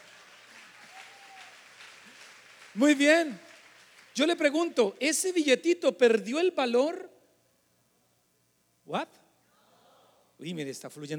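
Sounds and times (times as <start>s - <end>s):
audience applause: 0.0s - 4.8s
speech: 2.8s - 3.4s, 4.2s - 7.1s, 8.9s - 9.2s, 10.4s - 11.1s.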